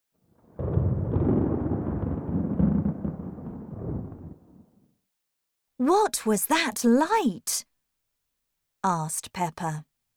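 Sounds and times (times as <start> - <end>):
thunder from a thunderstorm: 0.3 - 4.9
speech: 5.8 - 7.7, 8.8 - 9.9.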